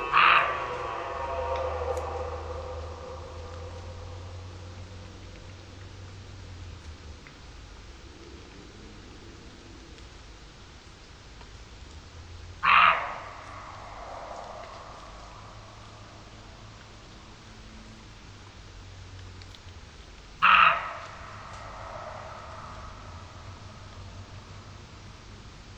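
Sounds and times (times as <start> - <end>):
red deer roaring: 0.0 - 5.6, 12.6 - 16.6, 20.4 - 24.8
quiet steady low hum: 0.0 - 8.1, 13.0 - 17.7, 20.8 - 25.7.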